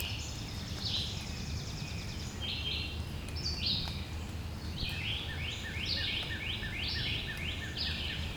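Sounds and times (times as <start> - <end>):
birds singing: 0.0 - 8.3.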